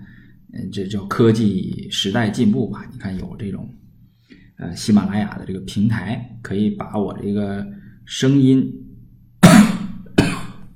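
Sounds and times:
speech: 0.7s - 3.8s, 4.6s - 8.8s
harsh coughs: 9.4s - 10.7s.

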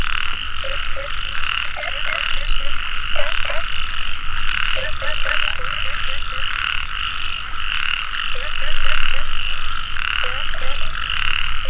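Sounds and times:
frog chorus in a valley at dusk: 0.0s - 11.6s
bird chirps and trills in a valley at dusk: 0.1s - 11.6s.

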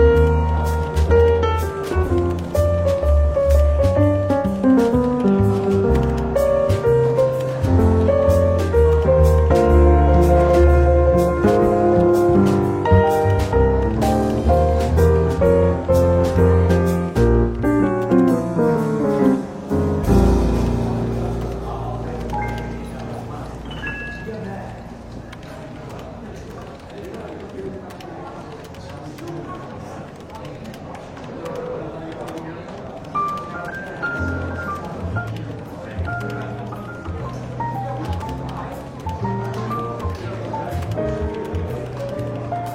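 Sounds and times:
soft jazz music in a London bookshop café: 0.0s - 26.5s, 33.1s - 42.7s
café chatter in a London bookshop café: 0.0s - 42.7s.

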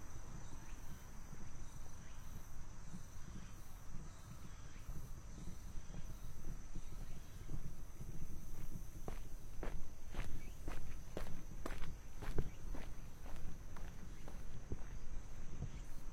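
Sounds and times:
thin constant high insect-like whine: 0.0s - 16.1s
footsteps of someone walking at a steady pace: 7.0s - 15.9s.

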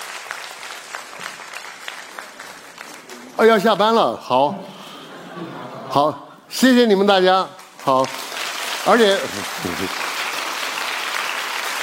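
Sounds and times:
audience applause for an older speaker at the close of a talk: 0.0s - 3.9s, 7.6s - 11.8s
speech: 3.4s - 4.8s, 5.4s - 8.2s, 8.8s - 10.1s
laughter: 4.3s - 6.4s.

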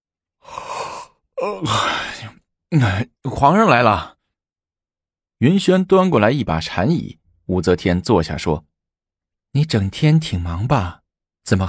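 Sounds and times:
person yawning: 0.4s - 3.0s
speech: 1.4s - 4.2s, 5.4s - 8.7s, 9.5s - 11.6s.

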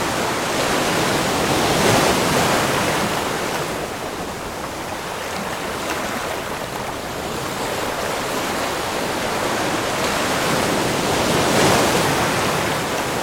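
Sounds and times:
ocean waves rolling in: 0.0s - 13.2s.

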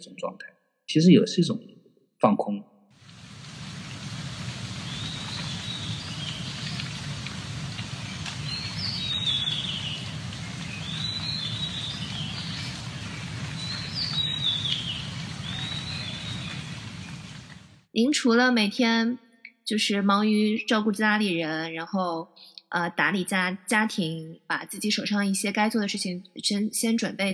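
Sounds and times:
speech: 0.0s - 2.7s, 18.0s - 27.3s
birdsong recorded from a balcony: 3.5s - 17.8s.

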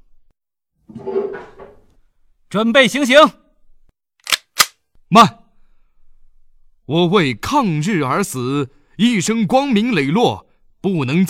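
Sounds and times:
wooden chair dragged and set down: 0.8s - 2.0s
speech: 2.5s - 3.4s, 5.1s - 5.4s, 6.9s - 11.2s.

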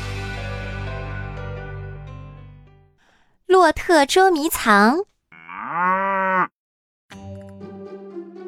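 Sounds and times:
speech: 3.5s - 5.1s
dairy cow mooing: 5.3s - 6.5s.

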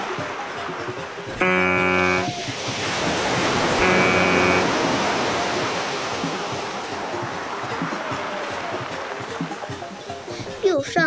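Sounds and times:
ocean waves: 0.0s - 11.0s
ship horn blasts: 1.4s - 2.5s, 3.6s - 5.3s.

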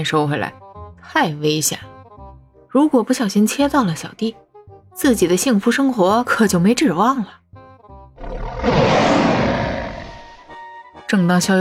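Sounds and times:
speech: 0.0s - 1.9s, 2.7s - 4.4s, 5.0s - 7.4s, 11.1s - 11.5s
huge angry roar from the sky: 8.2s - 10.4s.

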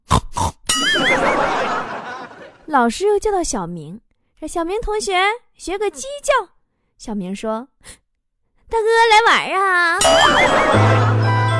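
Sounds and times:
child imitating pig oinking: 0.0s - 0.8s
laughter: 0.8s - 2.7s, 10.0s - 11.5s
speech: 2.7s - 8.0s, 8.7s - 11.2s.

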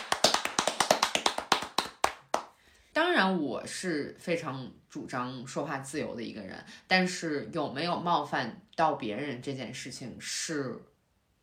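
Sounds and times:
person clapping hands: 0.0s - 2.6s
speech: 3.2s - 10.9s.

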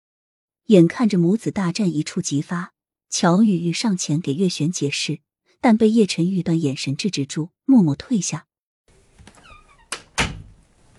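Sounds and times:
speech: 0.7s - 8.5s
door being pulled shut: 9.2s - 10.9s.

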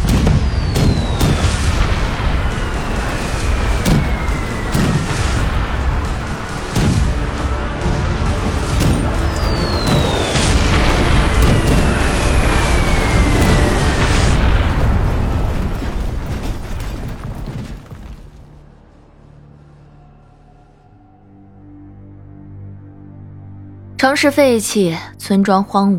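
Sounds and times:
war explosions and bombardment: 0.0s - 18.6s
speech: 24.1s - 25.9s.

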